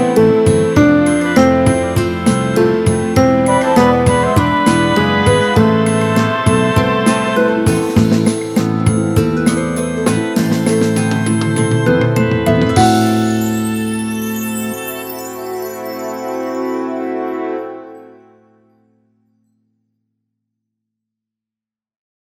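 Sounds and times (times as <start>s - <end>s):
piano: 0.0s - 19.2s
orchestra playing: 0.9s - 18.8s.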